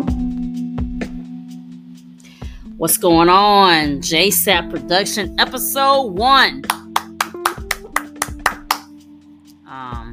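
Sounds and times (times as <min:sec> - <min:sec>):
speech: 0:02.8 - 0:06.8
sharp hand claps: 0:06.6 - 0:09.0.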